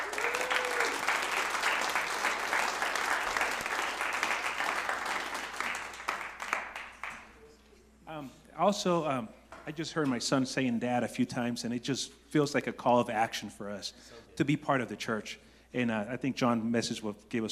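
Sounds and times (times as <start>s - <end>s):
audience clapping: 0.0s - 7.4s
speech: 8.6s - 17.5s.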